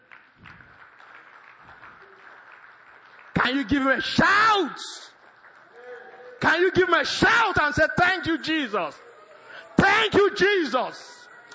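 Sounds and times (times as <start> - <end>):
audience clapping: 0.0 - 8.0
speech: 3.4 - 5.1, 6.4 - 9.1, 10.0 - 11.2.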